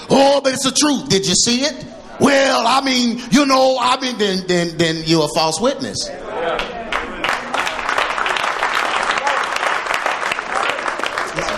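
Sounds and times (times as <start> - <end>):
speech: 0.2 - 6.7
audience clapping: 6.6 - 11.5.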